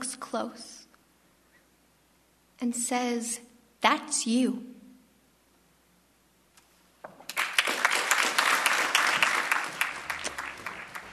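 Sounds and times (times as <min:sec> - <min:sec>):
speech: 0:00.3 - 0:00.8, 0:02.6 - 0:04.8
audience clapping: 0:07.1 - 0:11.1.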